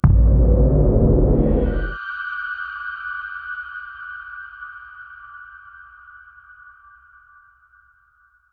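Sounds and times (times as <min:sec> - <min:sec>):
impact hit: 0:00.0 - 0:02.0
rising tension build: 0:00.0 - 0:02.0.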